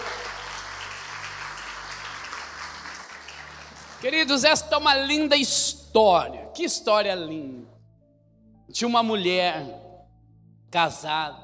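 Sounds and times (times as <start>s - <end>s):
audience applause: 0.0s - 4.4s
speech: 4.0s - 7.8s, 8.7s - 9.9s, 10.7s - 11.4s.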